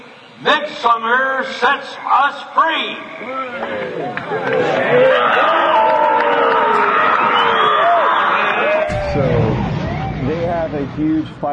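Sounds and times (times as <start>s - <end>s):
speech: 0.4s - 5.6s, 11.0s - 11.5s
crowd cheering at festival: 3.2s - 11.2s.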